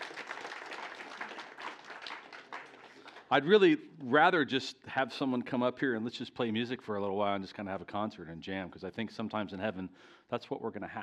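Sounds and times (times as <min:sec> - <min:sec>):
audience applause: 0:00.0 - 0:03.6
speech: 0:03.3 - 0:11.0.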